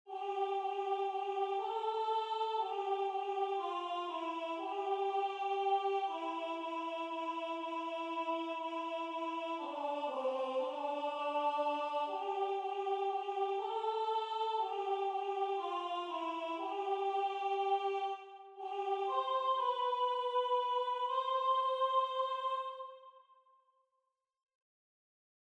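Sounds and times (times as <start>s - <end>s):
soprano singing: 0.1s - 23.0s.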